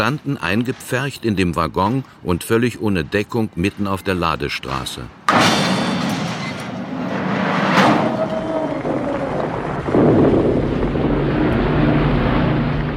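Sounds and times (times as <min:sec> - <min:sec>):
speech: 0:00.0 - 0:05.6
heavy anti-aircraft fire: 0:05.5 - 0:12.9.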